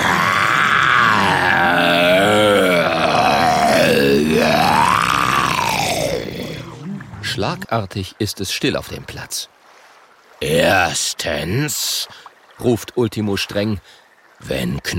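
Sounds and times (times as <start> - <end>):
long loud tyrannosaurus roar: 0.0 - 7.4
speech: 7.4 - 9.6, 10.4 - 14.9.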